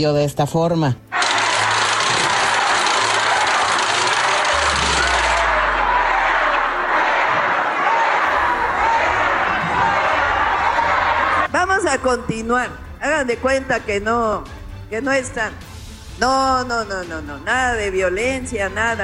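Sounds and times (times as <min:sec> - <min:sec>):
speech: 0:00.0 - 0:01.0, 0:12.0 - 0:15.6, 0:16.2 - 0:19.0
protesters shouting and booing: 0:01.1 - 0:11.5.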